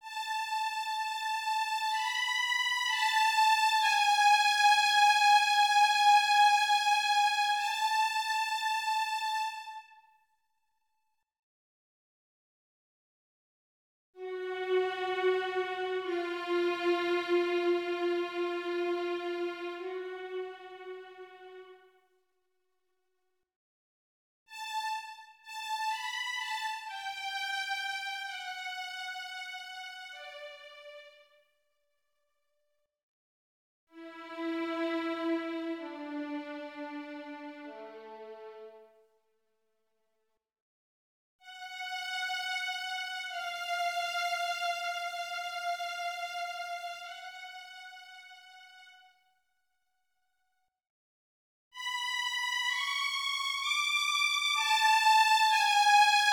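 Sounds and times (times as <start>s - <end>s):
violin piece for children: 0.0s - 9.8s, 14.2s - 21.8s, 24.5s - 31.2s, 34.0s - 38.8s, 41.4s - 49.1s, 51.8s - 56.3s.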